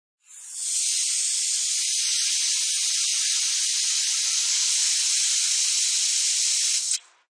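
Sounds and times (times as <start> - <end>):
compressed air from air compressor filling car tire at gas station: 0.2 - 7.1.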